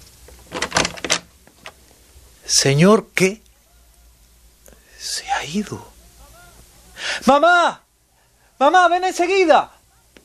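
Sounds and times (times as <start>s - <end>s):
door being opened: 0.4s - 1.8s
speech: 2.5s - 3.4s, 5.4s - 5.9s, 7.2s - 7.8s, 8.6s - 9.8s.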